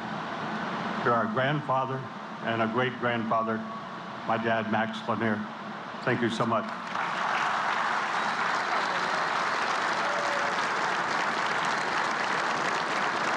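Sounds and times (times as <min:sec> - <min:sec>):
speech: 0:01.0 - 0:06.8
crowd applause: 0:06.6 - 0:13.3.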